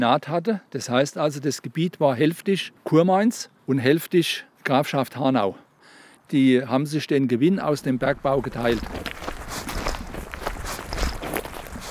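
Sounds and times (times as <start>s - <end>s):
speech: 0.0s - 5.6s, 6.3s - 9.7s
footsteps hiking through the Spessart hills: 8.0s - 11.8s
gritty rustling: 8.0s - 11.8s.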